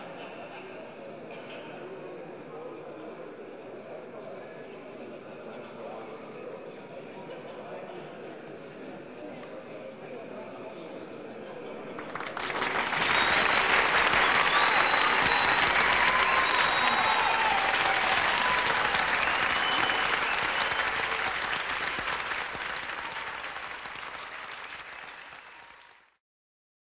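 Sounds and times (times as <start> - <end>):
lounge crowd: 11.4 - 25.1.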